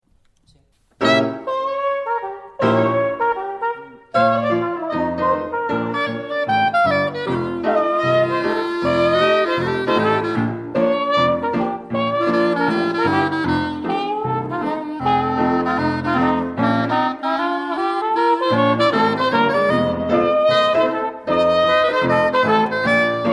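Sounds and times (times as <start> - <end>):
blues music: 0.8 - 23.3.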